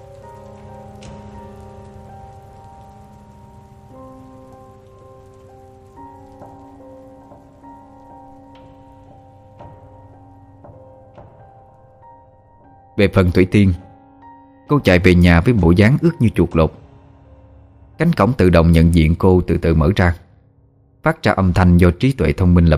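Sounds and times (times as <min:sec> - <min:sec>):
heavy rain falling: 0:00.0 - 0:11.4
speech: 0:13.0 - 0:13.8, 0:14.7 - 0:16.8, 0:18.0 - 0:20.2, 0:21.0 - 0:22.7.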